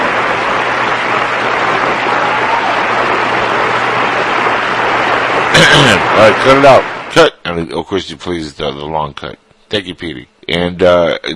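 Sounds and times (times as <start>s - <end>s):
applause sound effect button: 0.0s - 7.2s
speech: 5.8s - 11.3s.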